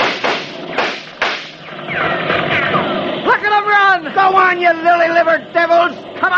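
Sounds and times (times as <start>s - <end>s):
gunfire sound effect in a radio drama shootout: 0.0s - 3.1s
steady noisy background: 0.0s - 6.3s
speech: 4.5s - 6.3s.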